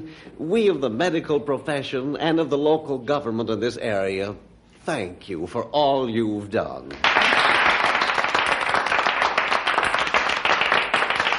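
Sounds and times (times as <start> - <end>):
speech: 0.2 - 7.3
audience applause: 7.0 - 11.3.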